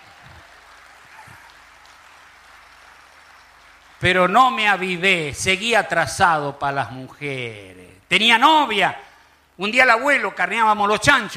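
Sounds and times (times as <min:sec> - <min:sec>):
audience applause: 0:00.0 - 0:05.0
speech: 0:04.0 - 0:11.3.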